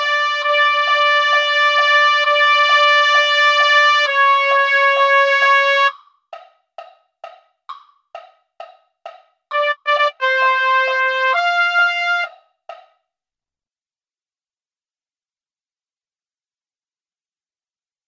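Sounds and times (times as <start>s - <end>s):
trumpet: 0.0s - 6.0s, 9.5s - 12.5s.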